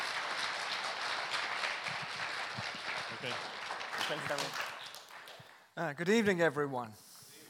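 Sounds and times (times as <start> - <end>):
church congregation clapping to welcome a speaker: 0.0 - 5.8
speech: 3.2 - 3.5, 4.1 - 4.7, 5.8 - 7.0.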